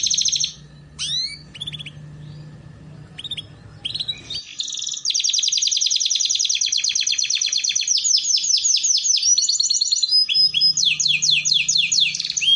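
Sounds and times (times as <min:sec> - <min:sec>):
canary song: 0:00.0 - 0:12.5
faint low hum: 0:00.0 - 0:12.5.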